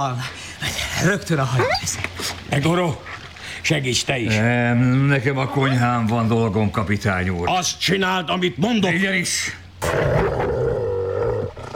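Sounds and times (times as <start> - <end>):
speech: 0.0 - 10.6
dog growling: 9.8 - 11.7.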